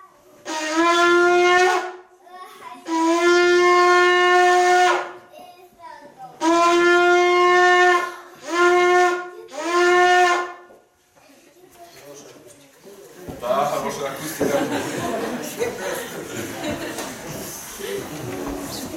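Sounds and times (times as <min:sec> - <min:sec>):
shofar being blown: 0:00.4 - 0:02.1, 0:02.9 - 0:05.2, 0:06.4 - 0:10.7
laughter: 0:13.4 - 0:18.9.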